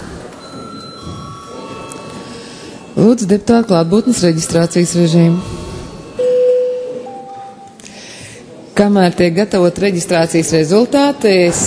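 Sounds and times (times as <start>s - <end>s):
parliament session bell: 0.4s - 7.7s
speech: 3.0s - 5.7s, 8.8s - 11.6s.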